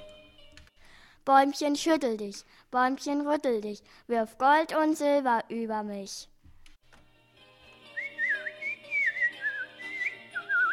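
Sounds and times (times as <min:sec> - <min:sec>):
speech: 0:01.3 - 0:06.3
person whistling birdlike melody imitating a small bird's song: 0:08.0 - 0:10.7.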